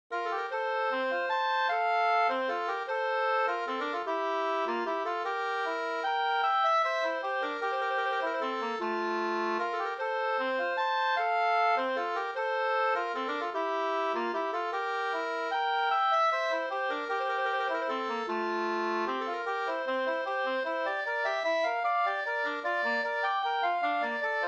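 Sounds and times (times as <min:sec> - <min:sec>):
waltz music: 0:00.2 - 0:24.4.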